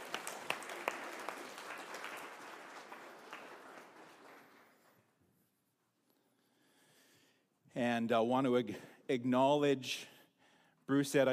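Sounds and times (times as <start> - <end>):
crowd applauding: 0.0 - 5.1
speech: 7.8 - 10.1, 10.9 - 11.3.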